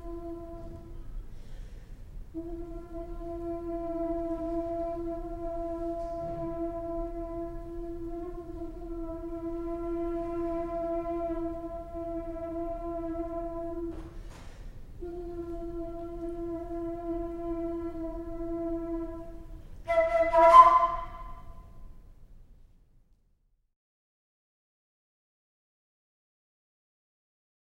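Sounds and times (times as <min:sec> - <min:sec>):
alto flute playing: 0:00.0 - 0:01.7, 0:02.3 - 0:22.0.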